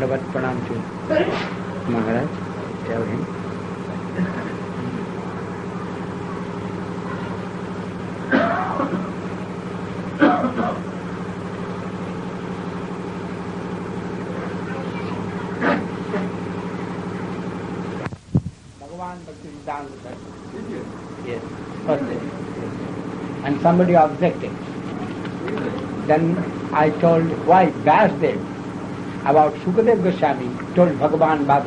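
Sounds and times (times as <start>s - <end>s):
speech: 0.0s - 3.4s, 4.2s - 4.6s, 23.6s - 24.7s, 26.1s - 28.5s, 29.2s - 31.6s
electric generator running: 0.0s - 31.6s
coughs or throat-clearing: 1.1s - 1.6s, 4.1s - 5.1s, 8.2s - 9.3s, 10.1s - 11.0s, 15.4s - 16.4s.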